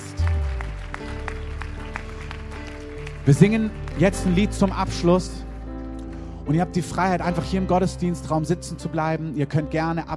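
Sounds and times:
audience applause: 0:00.0 - 0:06.2
speech: 0:03.2 - 0:05.5, 0:06.5 - 0:10.1.

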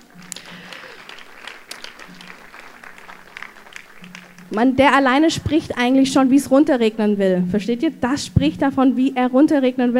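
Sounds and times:
audience applause: 0:00.0 - 0:04.6
speech: 0:04.5 - 0:09.9.

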